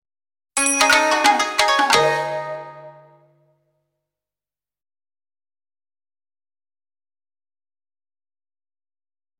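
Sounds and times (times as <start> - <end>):
battle lose jingle: 0.6 - 3.3.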